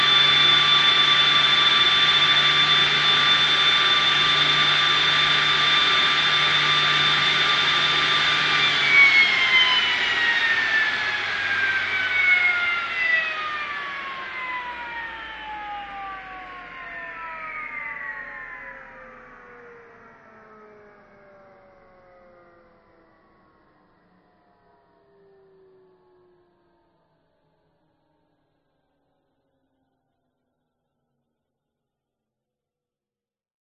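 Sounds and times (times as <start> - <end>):
science fiction spacecraft jet engine starting up, powering up, idling and shutting off: 0.0 - 22.4.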